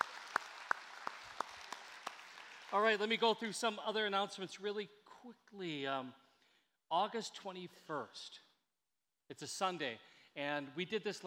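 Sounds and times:
faint sparse applause: 0.0s - 3.1s
speech: 2.7s - 6.2s, 6.9s - 8.4s, 9.3s - 11.2s.

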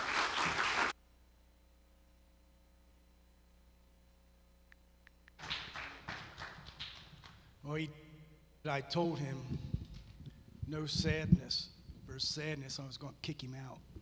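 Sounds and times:
crowd audience applause: 0.0s - 0.9s, 5.4s - 7.5s
speech: 7.7s - 9.8s, 10.7s - 14.0s.

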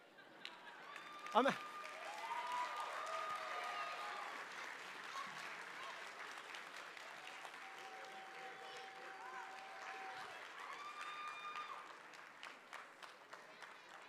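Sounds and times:
crowd clapping: 0.4s - 14.0s
cheers and whoops: 0.7s - 5.9s, 7.2s - 12.0s.

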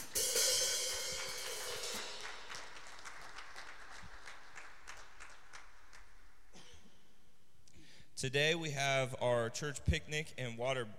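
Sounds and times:
audience applause: 0.9s - 6.1s
speech: 8.2s - 10.9s.

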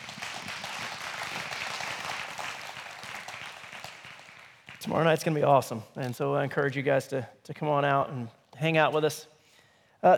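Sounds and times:
audience applause: 0.0s - 5.0s
speech: 4.8s - 9.3s, 10.0s - 10.1s.

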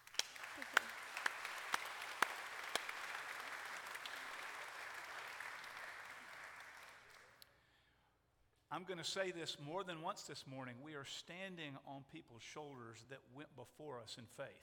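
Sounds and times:
audience applause: 0.0s - 7.4s
speech: 8.8s - 14.6s.

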